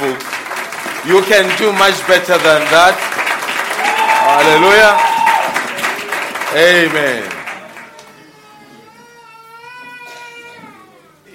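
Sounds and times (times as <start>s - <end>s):
audience clapping hands: 0.0s - 8.2s
speech: 1.0s - 3.1s, 4.4s - 5.3s, 6.5s - 7.4s.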